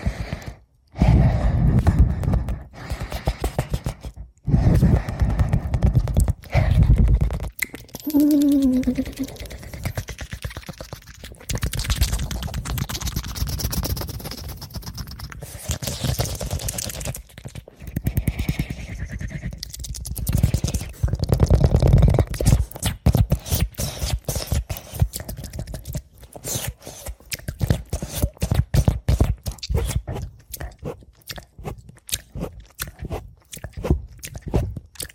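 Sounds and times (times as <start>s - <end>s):
fast ASMR mouth sounds: 0.0s - 35.1s
short tonal hum or voiced sound: 8.0s - 10.0s.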